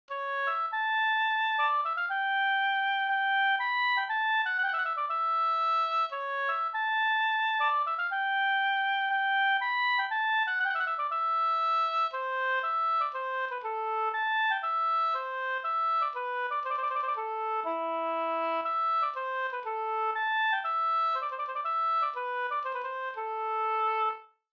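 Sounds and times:
polska folk dance tune: 0.1 - 24.2.

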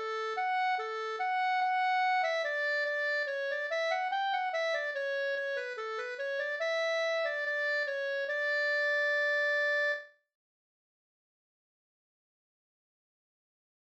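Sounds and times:
folk walking tune: 0.0 - 10.0.

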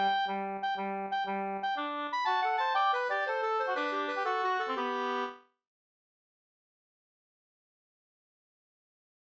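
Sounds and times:
polska dance tune: 0.0 - 5.4.

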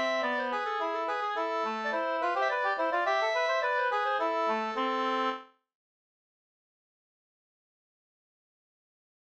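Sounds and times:
two-part slangpolska: 0.0 - 5.4.

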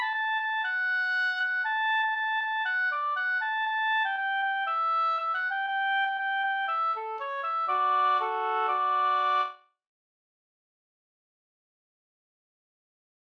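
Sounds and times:
polka music: 0.0 - 9.6.

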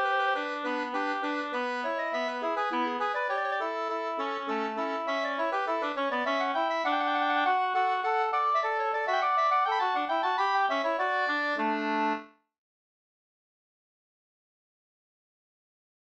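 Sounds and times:
two-part slangpolska: 0.0 - 12.3.

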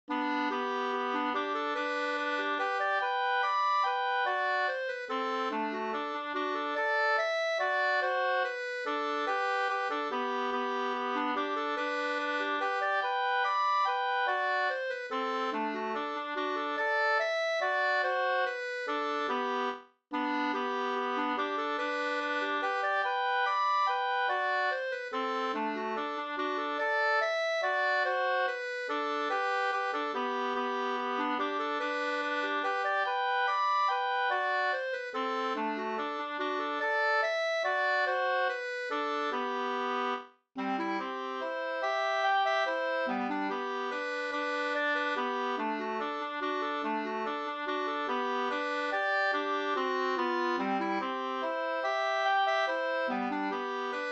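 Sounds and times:
mazurka music: 0.1 - 54.0.

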